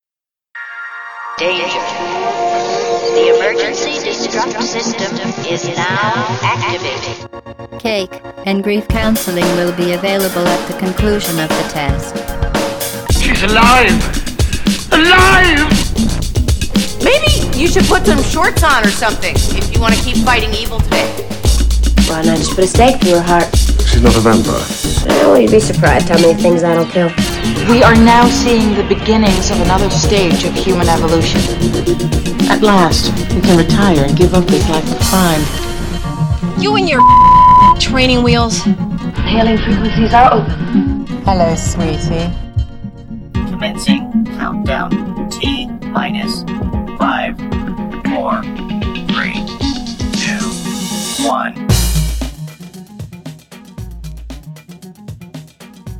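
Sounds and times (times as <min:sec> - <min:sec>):
intro music: 0:00.6 - 0:55.9.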